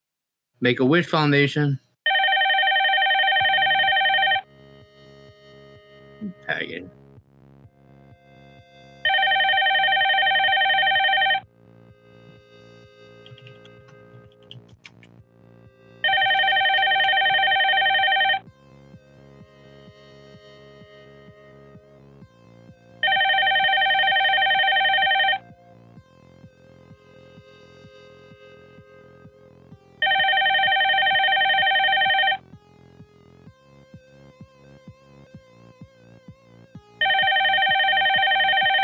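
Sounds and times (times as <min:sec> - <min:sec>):
speech: 0:00.6 - 0:01.8
telephone ringing with an incoming call, bright electronic ring: 0:02.1 - 0:04.5, 0:09.0 - 0:11.4, 0:16.0 - 0:18.4, 0:23.0 - 0:25.4, 0:30.0 - 0:32.4, 0:37.0 - 0:38.8.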